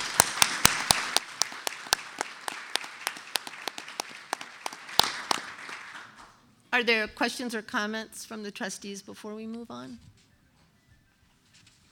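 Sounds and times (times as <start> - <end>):
audience applause: 0.0 - 6.4
speech: 6.8 - 10.1.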